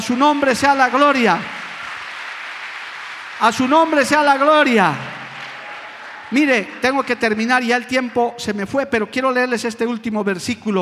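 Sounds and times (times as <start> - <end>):
speech: 0.0 - 1.6, 3.4 - 5.2, 6.3 - 10.8
audience applause: 0.0 - 8.1.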